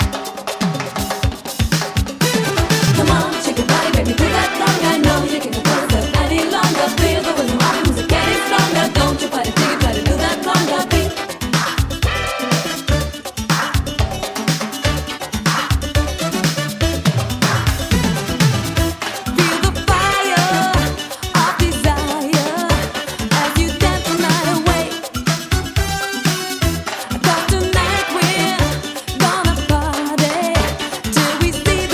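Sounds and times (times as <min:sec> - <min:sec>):
conga: 0:00.0 - 0:31.9.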